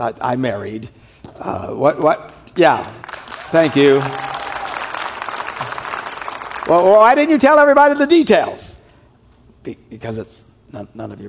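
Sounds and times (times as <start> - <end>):
speech: 0.0 - 4.3, 6.7 - 8.7, 9.6 - 11.2
audience clapping: 2.3 - 7.4.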